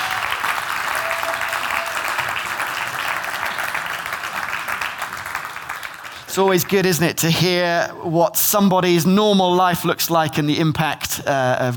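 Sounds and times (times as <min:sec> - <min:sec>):
audience applause: 0:00.0 - 0:06.8
speech: 0:06.4 - 0:11.7.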